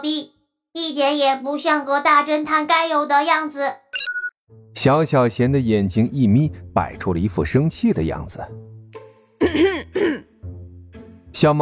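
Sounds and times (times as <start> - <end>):
speech: 0.0 - 4.0, 4.8 - 8.7, 9.5 - 10.3, 11.4 - 11.5
throat clearing: 9.4 - 10.3.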